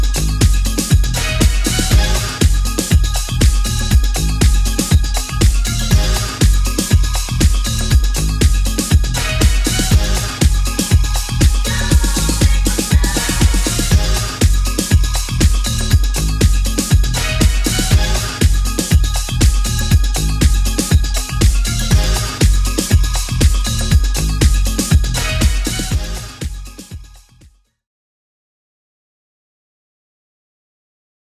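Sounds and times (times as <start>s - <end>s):
music loop at 120 bpm: 0.0s - 27.3s.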